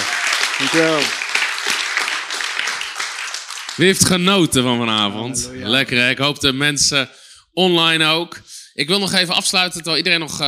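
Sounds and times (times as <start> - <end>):
applause: 0.0 - 5.1
speech: 0.6 - 1.2, 3.8 - 10.4.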